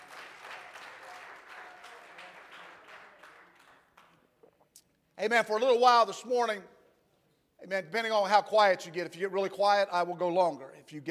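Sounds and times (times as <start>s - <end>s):
audience clapping: 0.0s - 4.5s
speech: 5.2s - 6.8s, 7.6s - 11.0s.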